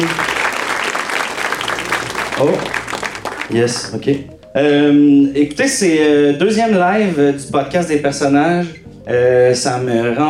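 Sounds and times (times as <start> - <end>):
audience applause: 0.0 - 4.2
speech: 2.4 - 2.8, 3.5 - 10.2.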